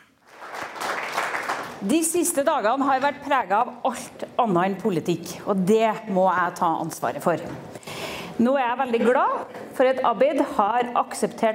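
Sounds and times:
large crowd applauding at a party meeting: 0.0s - 1.8s
speech: 1.8s - 7.8s, 8.4s - 11.5s.

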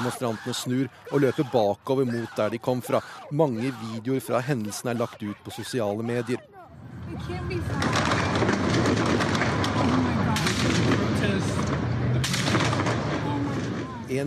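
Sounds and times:
laughter: 0.0s - 8.0s
speech: 0.0s - 8.1s
crowd voices: 0.0s - 14.2s
heavy gunfire: 7.6s - 14.2s.

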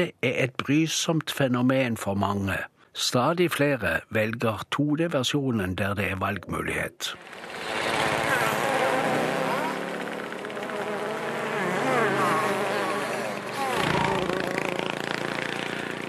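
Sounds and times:
speech: 0.0s - 7.7s
insects buzzing in a film excerpt: 7.2s - 16.0s.

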